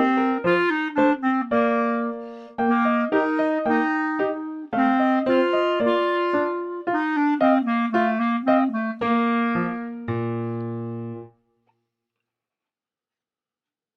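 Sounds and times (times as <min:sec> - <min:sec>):
clarinet playing a dance song: 0:00.0 - 0:11.3.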